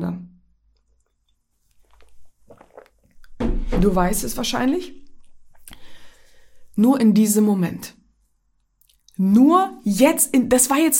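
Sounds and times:
faint sipping of a drink: 0.9 - 3.4, 5.1 - 6.8
speech: 3.7 - 5.0, 6.8 - 8.0, 9.2 - 10.9.

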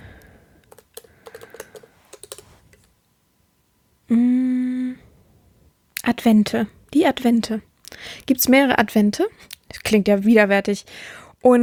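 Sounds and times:
fast typing on a computer keyboard searching Google: 0.6 - 2.9
speech: 6.2 - 11.6.

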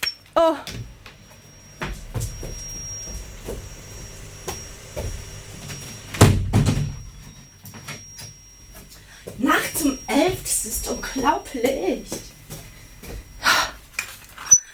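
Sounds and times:
faint steady high whine: 0.0 - 14.7
speech: 0.4 - 0.9, 11.2 - 12.3
window being closed: 0.8 - 7.1.

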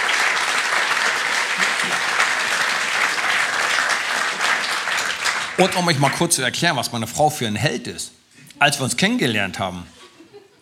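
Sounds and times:
audience applause: 0.0 - 6.4
speech: 5.6 - 10.0.

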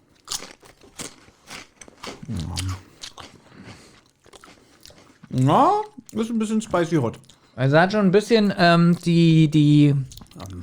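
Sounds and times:
chewing crunchy snack: 0.0 - 6.3, 10.0 - 10.6
speech: 5.4 - 10.2.

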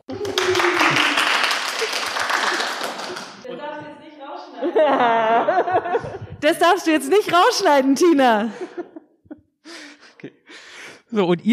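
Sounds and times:
crowd clapping: 0.0 - 3.5
laughter: 0.0 - 6.6, 8.2 - 10.4
speech: 4.9 - 8.8, 11.2 - 11.5.

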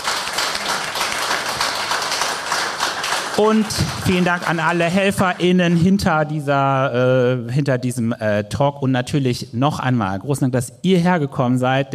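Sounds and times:
audience applause: 0.0 - 5.8
speech: 3.4 - 11.9.

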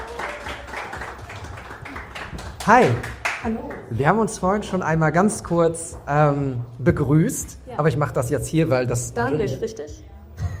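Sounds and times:
audience applause: 0.0 - 3.9
speech: 2.6 - 10.1.

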